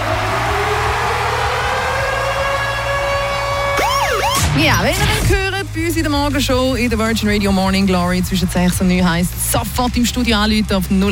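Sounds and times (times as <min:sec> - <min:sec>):
radio ticket alarm jingle with loud wailing siren: 0:00.0 - 0:05.2
quick rising sweep: 0:00.0 - 0:05.3
pulsing low rumble: 0:00.0 - 0:11.1
speech: 0:04.6 - 0:11.1.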